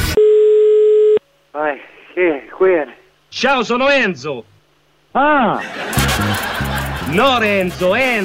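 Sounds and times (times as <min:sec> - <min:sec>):
telephone line tone: 0:00.2 - 0:01.2
speech: 0:01.8 - 0:04.5, 0:05.2 - 0:06.5, 0:07.1 - 0:08.2
laughter: 0:05.4 - 0:07.9.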